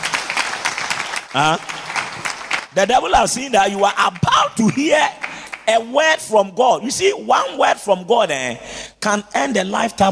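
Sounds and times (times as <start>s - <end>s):
audience clapping: 0.0s - 6.2s
speech: 1.3s - 1.8s, 2.8s - 10.0s.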